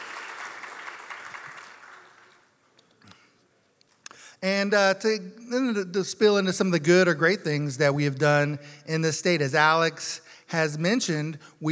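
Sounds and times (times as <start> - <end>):
audience applause: 0.0 - 2.5
speech: 4.4 - 11.7.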